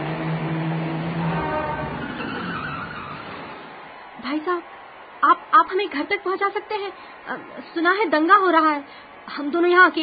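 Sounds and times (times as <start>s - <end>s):
car approaching: 0.0s - 4.0s
speech: 4.4s - 10.0s.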